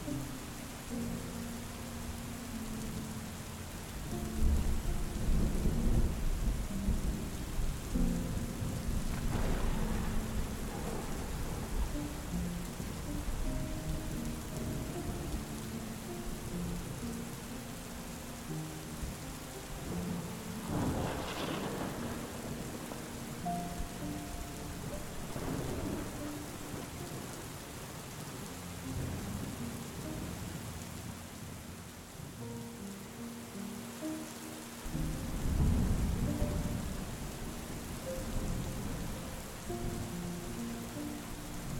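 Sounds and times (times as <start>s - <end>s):
soft slow relaxing music: 0.0s - 41.7s
storm rain hissing: 0.0s - 41.7s
deep thunder rumbling: 3.7s - 17.3s, 18.5s - 27.9s, 34.9s - 41.7s.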